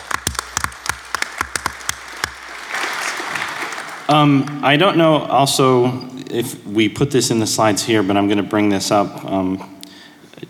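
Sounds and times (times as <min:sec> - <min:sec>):
audience applause for the Parallax hardware team at a tech presentation: 0:00.0 - 0:04.8
speech: 0:04.1 - 0:09.8.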